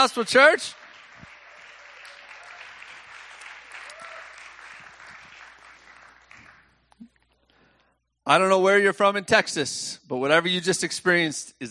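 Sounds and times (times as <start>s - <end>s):
speech: 0.0s - 0.8s, 8.3s - 11.6s
audience applause for newlyweds at Calvary Gospel Church: 0.4s - 6.8s.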